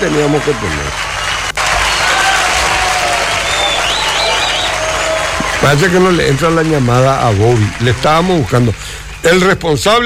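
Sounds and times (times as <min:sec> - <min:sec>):
speech: 0:00.0 - 0:01.1, 0:05.6 - 0:10.0
applause: 0:00.0 - 0:09.7.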